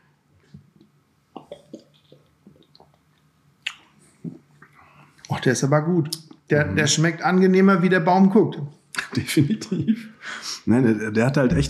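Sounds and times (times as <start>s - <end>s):
mouth clicks: 1.4s - 4.8s
person sipping a chilled drink from a bottle: 1.4s - 4.8s
speech: 5.3s - 11.6s.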